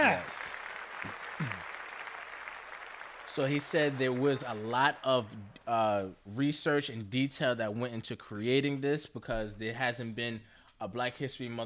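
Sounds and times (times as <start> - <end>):
audience clapping: 0.0 - 5.8
speech: 3.4 - 11.6.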